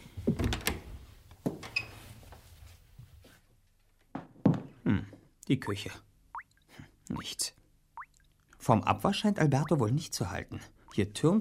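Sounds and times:
door opening: 0.4 - 1.0
speech: 5.5 - 6.1, 7.1 - 7.6, 8.7 - 11.3.

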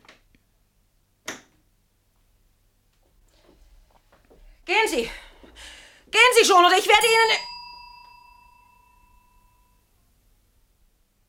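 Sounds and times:
speech: 4.8 - 5.2, 6.2 - 7.5
bell ringing: 6.3 - 9.8.

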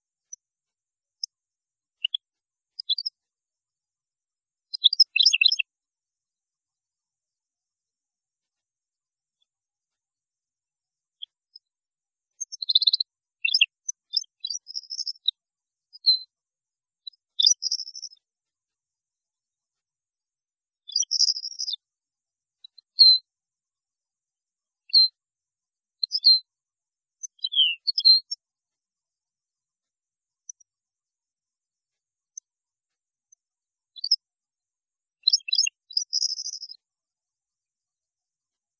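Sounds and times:
European goldfinch twittering song: 2.8 - 3.1, 4.7 - 5.6, 12.4 - 15.4, 17.4 - 18.2, 20.9 - 21.8, 26.0 - 26.4, 27.2 - 28.3, 35.2 - 36.8.

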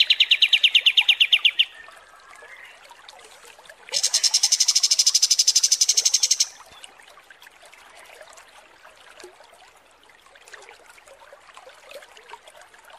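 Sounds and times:
kapas tembak trilling: 0.0 - 1.7, 4.0 - 6.6.

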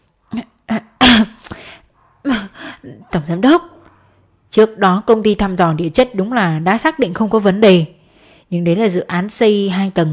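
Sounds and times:
dry cough: 1.0 - 1.5
speech: 2.8 - 3.7, 4.5 - 10.1.

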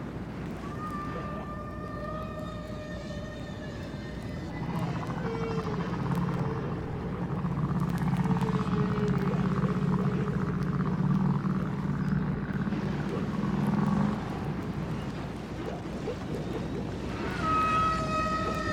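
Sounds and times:
humpback whale song off the coast of an island: 0.0 - 18.7.

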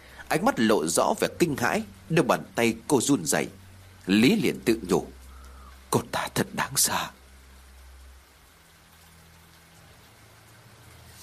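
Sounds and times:
heavy rain falling: 0.0 - 11.2
speech: 0.3 - 5.2, 5.9 - 7.2.

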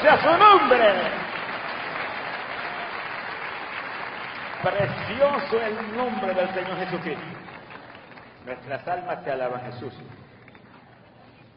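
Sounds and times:
speech: 0.0 - 1.3, 4.6 - 7.5, 8.4 - 10.2
audience applauding: 0.0 - 11.5.

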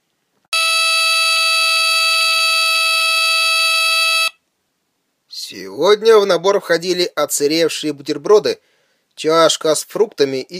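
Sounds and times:
howling siren calling for meal rations: 0.6 - 4.3
speech: 5.5 - 10.5.

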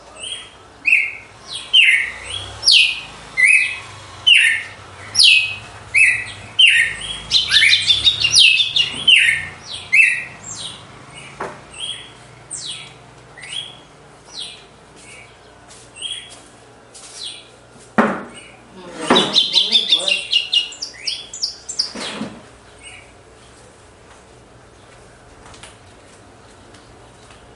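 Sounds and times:
Red-cowled cardinal whistling song: 0.2 - 13.8, 19.2 - 22.2.

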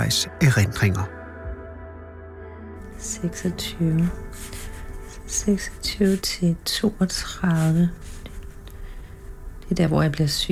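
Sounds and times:
speech: 0.0 - 1.2, 3.0 - 4.6, 5.3 - 8.2, 9.7 - 10.5
marker writing on paper: 3.4 - 8.6.

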